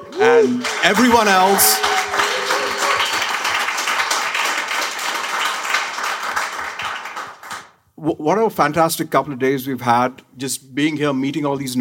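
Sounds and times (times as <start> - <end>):
audience applause: 0.0 - 7.7
speech: 0.2 - 2.0, 8.0 - 11.7.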